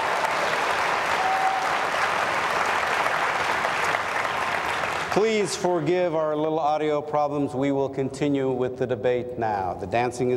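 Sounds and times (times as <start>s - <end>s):
crowd applause: 0.0s - 5.8s
speech: 5.2s - 10.3s.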